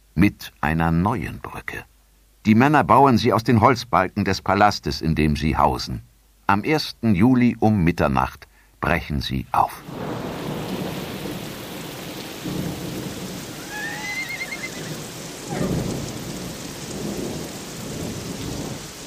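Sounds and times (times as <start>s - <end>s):
speech: 0.2s - 10.3s
low thunder rumbling: 9.8s - 19.0s
steady heavy rain at night: 9.8s - 19.0s.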